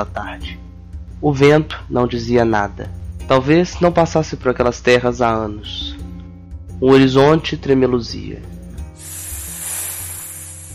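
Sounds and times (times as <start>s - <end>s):
speech: 0.0s - 6.1s, 6.8s - 8.6s
small black-scaled snake hissing on desert sand: 8.9s - 10.7s.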